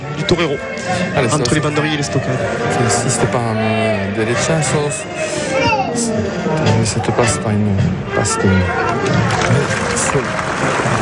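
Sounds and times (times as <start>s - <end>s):
speech: 0.2s - 11.0s
audience applauding at a bullfight: 8.7s - 11.0s.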